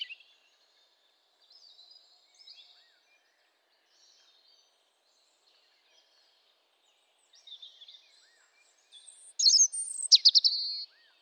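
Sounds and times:
robin singing: 0:00.0 - 0:00.2, 0:09.0 - 0:10.8.

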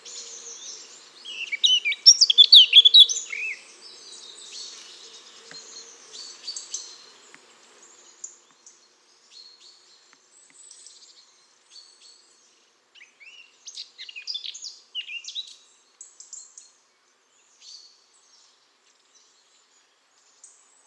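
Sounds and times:
Eurasian blackcap song: 0:00.0 - 0:12.2.

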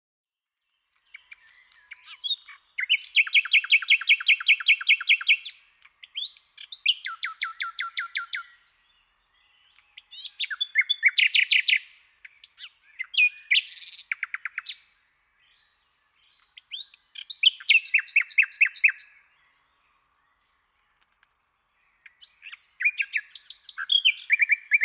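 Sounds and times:
common nightingale singing: 0:00.9 - 0:24.8.

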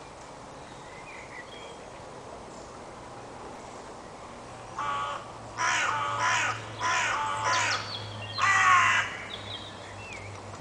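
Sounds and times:
carrion crow Corvus corone giving harsh rasping caws: 0:04.8 - 0:09.3.

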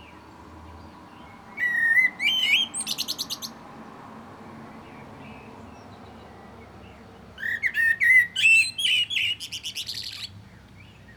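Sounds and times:
common blackbird Turdus merula whistled warbling song with shrill twitters: 0:01.6 - 0:03.6, 0:07.4 - 0:10.3.

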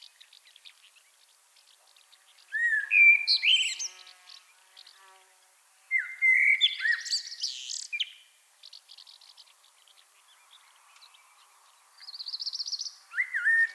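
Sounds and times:
common blackbird Turdus merula singing: 0:02.5 - 0:04.0, 0:05.9 - 0:08.3, 0:12.1 - 0:13.7.

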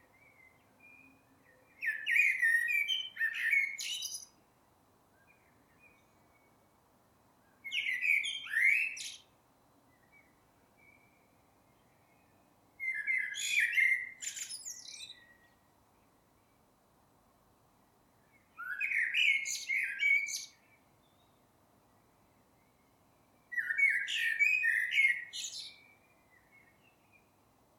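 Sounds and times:
common blackbird whistled song: 0:00.0 - 0:04.4, 0:05.1 - 0:06.6, 0:07.4 - 0:09.3, 0:09.9 - 0:15.6, 0:18.2 - 0:21.4, 0:22.6 - 0:27.3.

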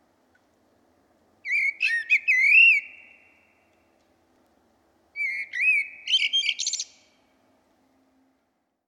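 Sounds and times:
common blackbird Turdus merula singing: 0:01.4 - 0:03.5, 0:05.2 - 0:07.0.

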